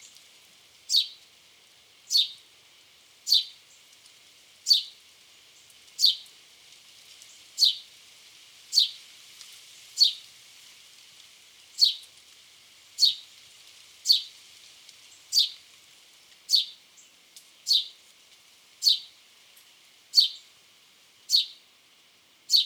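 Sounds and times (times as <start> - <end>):
house sparrow Passer domesticus sharp downward chirps: 0.9 - 1.2, 2.1 - 2.4, 3.3 - 3.6, 4.7 - 5.0, 6.0 - 6.2, 7.6 - 7.8, 8.8 - 9.0, 10.0 - 10.2, 11.8 - 12.0, 13.0 - 13.2, 14.1 - 14.3, 15.3 - 15.6, 16.5 - 16.8, 17.7 - 18.0, 18.8 - 19.1, 20.2 - 20.5, 21.3 - 21.6, 22.5 - 22.6.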